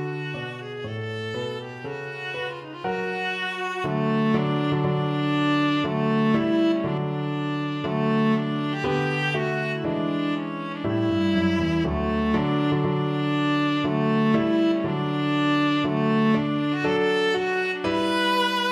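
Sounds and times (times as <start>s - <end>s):
viola playing: 0.0s - 18.7s.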